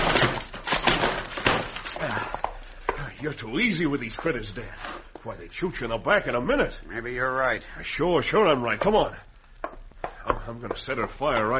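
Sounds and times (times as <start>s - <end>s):
wooden door being busted in: 0.0s - 2.1s
speech: 3.2s - 9.3s, 10.2s - 11.5s.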